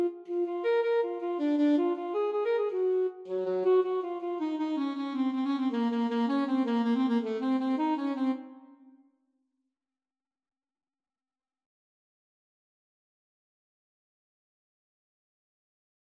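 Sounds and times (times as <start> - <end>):
alto and tenor saxophone duet: 0.0 - 8.9.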